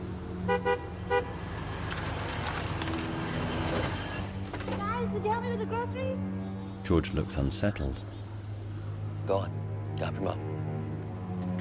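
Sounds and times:
car engine and road noise driving up to a house with a porch: 0:00.0 - 0:11.6
car horn toots: 0:00.5 - 0:01.4
speech: 0:05.3 - 0:08.1, 0:09.3 - 0:10.5.

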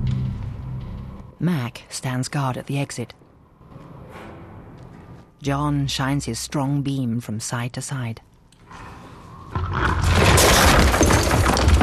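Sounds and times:
speech: 0:01.4 - 0:03.2, 0:05.4 - 0:08.9
small pieces of stone tumbling down a rock face: 0:09.5 - 0:11.8.

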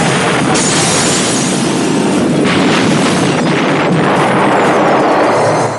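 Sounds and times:
hardware store building exploding from thrown grenades: 0:00.1 - 0:05.7.

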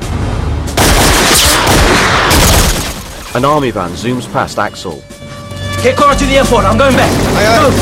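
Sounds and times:
soldier firing a gun from a walkway in a film scene: 0:00.7 - 0:03.1
speech: 0:03.4 - 0:05.1, 0:05.8 - 0:07.8.

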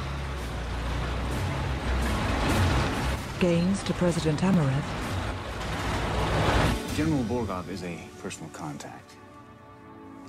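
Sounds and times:
tank and armored personnel carrier engine rumble and mechanical noise: 0:00.0 - 0:06.8
speech: 0:03.4 - 0:05.0, 0:07.0 - 0:09.2.

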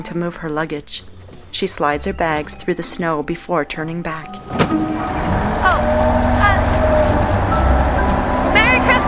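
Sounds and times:
speech: 0:00.0 - 0:07.2
bus pulling away: 0:04.4 - 0:09.0.

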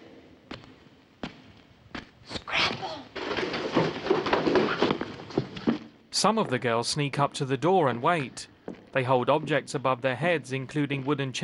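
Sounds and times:
footsteps: 0:00.4 - 0:09.7
dense loud clattering noise: 0:02.7 - 0:06.5
speech: 0:06.2 - 0:11.4.

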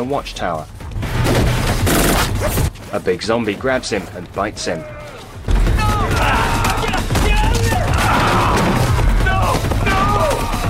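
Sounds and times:
speech: 0:00.0 - 0:01.5, 0:02.4 - 0:05.0
soldier firing rapid gunfire on a crowd of zombies: 0:01.1 - 0:02.7, 0:05.5 - 0:10.6.

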